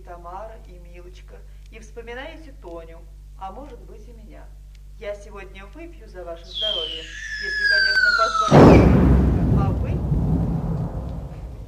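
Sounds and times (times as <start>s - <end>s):
speech: 0.1s - 10.1s
artillery shelling explosions: 6.6s - 11.6s.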